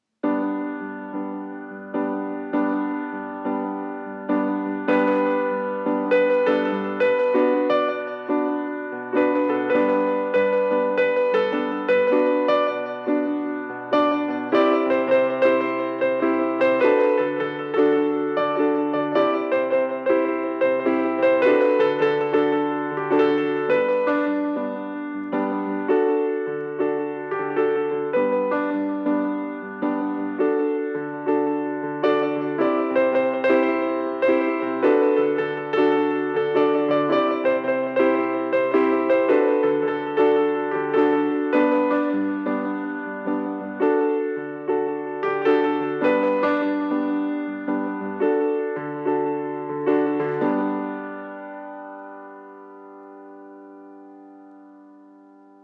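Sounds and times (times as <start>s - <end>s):
quiet piano: 0.0s - 55.6s.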